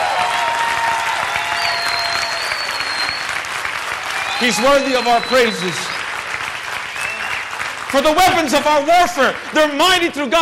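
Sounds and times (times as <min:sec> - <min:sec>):
audience clapping: 0:00.0 - 0:10.3
high whistles: 0:01.3 - 0:03.5, 0:04.1 - 0:06.0, 0:06.8 - 0:07.5
speech: 0:04.4 - 0:05.9, 0:07.9 - 0:10.3.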